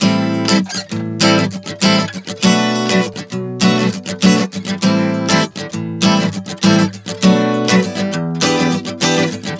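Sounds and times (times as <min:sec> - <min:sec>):
acoustic guitar chord progression: 0:00.0 - 0:09.5.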